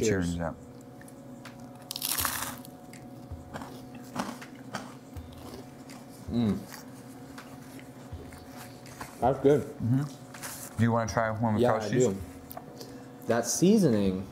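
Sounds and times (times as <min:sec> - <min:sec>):
speech: 0:00.0 - 0:00.6, 0:06.3 - 0:06.8, 0:09.2 - 0:10.2, 0:10.8 - 0:12.3, 0:13.3 - 0:14.2
biting and chewing crunchy food: 0:01.6 - 0:09.2
short murmured hum: 0:06.3 - 0:06.7.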